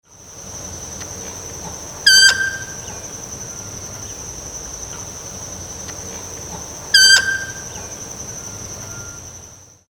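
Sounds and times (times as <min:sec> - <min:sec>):
Aramides ypecaha calling: 0:02.0 - 0:03.0, 0:06.5 - 0:07.9.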